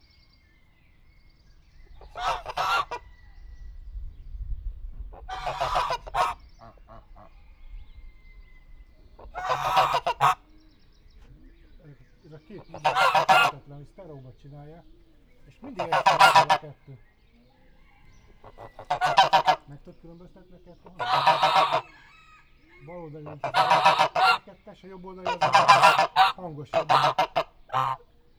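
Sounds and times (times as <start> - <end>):
turkeys at a zoo: 2.0 - 3.2, 5.2 - 7.3, 9.0 - 10.6, 11.2 - 28.3
people chattering in the background at a zoo: 9.2 - 28.3.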